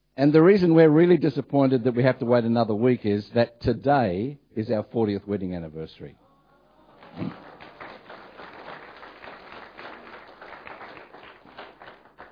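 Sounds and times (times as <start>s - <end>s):
speech: 0.2s - 6.2s, 7.2s - 7.4s
audience applause: 6.8s - 12.3s.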